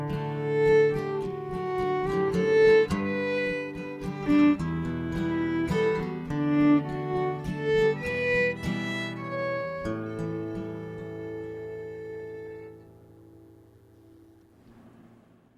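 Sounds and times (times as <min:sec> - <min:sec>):
fiddle playing a waltz: 0:00.0 - 0:13.6
guitar: 0:00.0 - 0:15.5.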